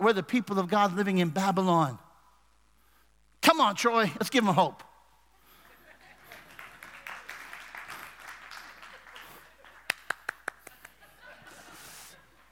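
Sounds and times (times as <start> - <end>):
speech: 0.0 - 2.0, 3.5 - 4.9
laughter: 5.4 - 12.5
golf clap, polite light clapping: 6.2 - 11.2.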